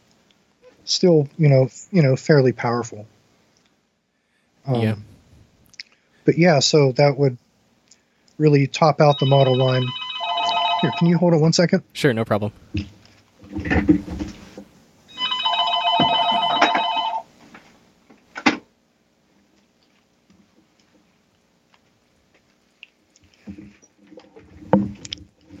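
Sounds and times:
speech: 0.9 - 3.2, 4.7 - 5.1, 6.3 - 7.4, 8.4 - 10.0, 10.8 - 14.3
telephone ringing with a robocall: 9.0 - 11.3, 15.1 - 17.3.

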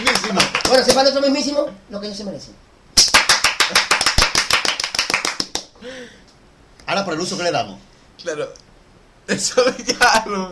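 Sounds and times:
applause: 0.0 - 1.1, 3.0 - 5.8
speech: 0.8 - 2.7, 6.9 - 8.6, 9.3 - 10.5.

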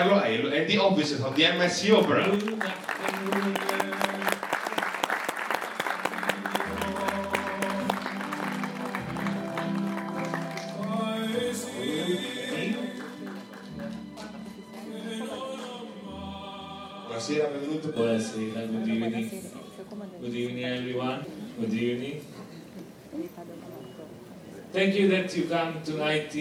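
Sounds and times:
speech: 0.0 - 3.9, 17.9 - 22.4, 24.7 - 26.3
crowd applauding: 1.2 - 15.8
upbeat music with a deep bass line: 6.2 - 17.4.

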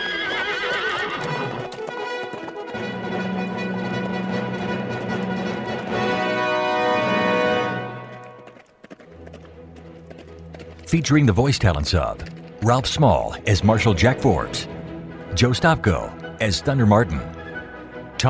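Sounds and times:
horse neighing: 0.0 - 1.7
horse galloping away: 0.0 - 18.2
speech: 10.9 - 14.7, 15.4 - 17.3.

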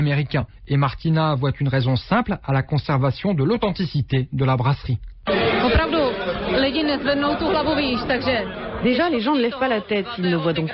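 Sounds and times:
speech: 0.0 - 10.7
chatter of patrons in a beer hall: 5.3 - 10.7.

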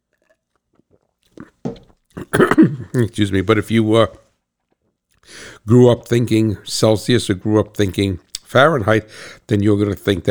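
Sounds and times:
sipping and swallowing water: 0.1 - 4.2, 5.3 - 10.2
throaty burst: 2.2 - 3.4, 5.3 - 7.2, 8.4 - 9.5
speech: 2.3 - 4.2, 5.3 - 10.2.

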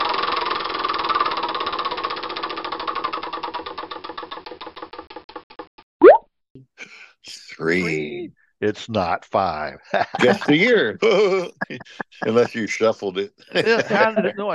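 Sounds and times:
wheel of randomness spinning: 0.0 - 5.4
speech: 7.6 - 14.5
laughter: 9.6 - 14.5.

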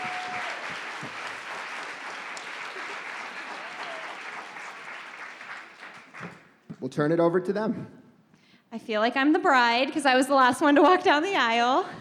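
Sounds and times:
live-show audience applause for podcast hosts: 0.0 - 6.6
speech: 6.8 - 8.0, 8.8 - 12.0.

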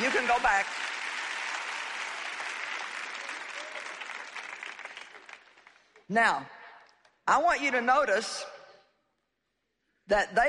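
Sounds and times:
audience clapping: 0.0 - 6.1
speech: 0.3 - 0.9, 6.1 - 6.6, 7.3 - 8.6, 10.1 - 10.4.

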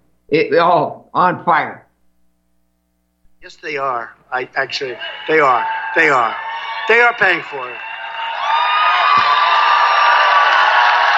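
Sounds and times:
speech: 0.3 - 1.8, 3.4 - 7.9
crowd cheering wildly: 4.4 - 11.1.

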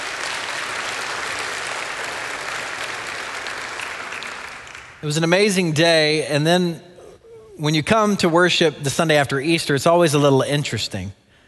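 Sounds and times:
audience applause: 0.0 - 5.0
speech: 5.0 - 6.9, 7.6 - 11.2.

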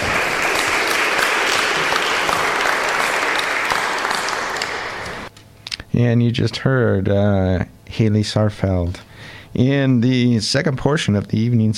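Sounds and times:
audience applause: 0.0 - 5.3
speech: 6.0 - 11.7.

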